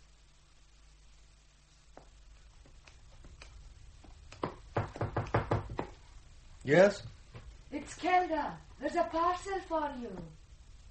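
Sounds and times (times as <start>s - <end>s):
firm knocks on a door: 4.4s - 6.0s
speech: 6.6s - 7.1s, 7.8s - 10.4s.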